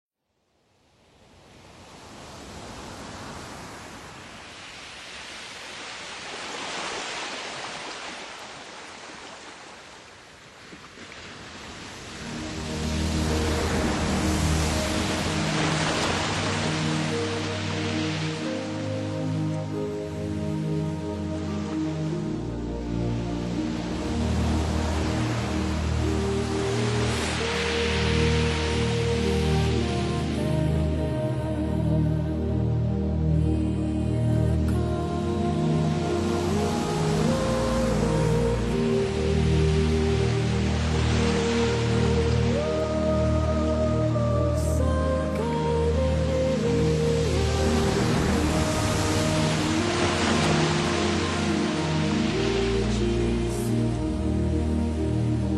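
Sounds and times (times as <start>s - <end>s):
Polynesian spa relaxation music: 11.4s - 55.5s.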